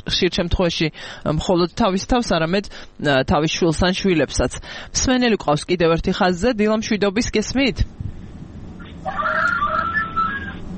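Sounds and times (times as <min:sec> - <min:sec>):
low steady hum: 0:00.0 - 0:10.7
speech: 0:00.1 - 0:08.0
rooster crowing in the morning through a telephone line: 0:09.0 - 0:10.6.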